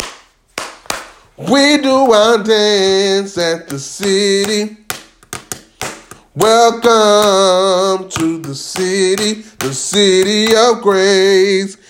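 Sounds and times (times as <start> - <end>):
speech: 1.4 - 4.8, 6.4 - 11.8
pens drummed like drumsticks: 3.7 - 10.7.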